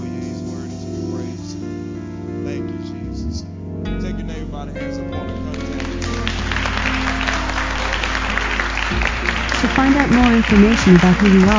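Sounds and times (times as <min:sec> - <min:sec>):
audience clapping: 0:05.4 - 0:11.5
speech: 0:10.4 - 0:11.5.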